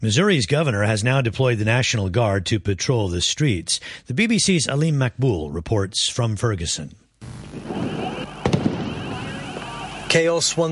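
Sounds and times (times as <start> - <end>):
speech: 0.0 - 8.0, 10.1 - 10.7
outdoor noise in Ferguson, Missouri: 7.1 - 10.7
police sound bombs exploding during street protests in Ferguson, Missouri: 7.2 - 10.2.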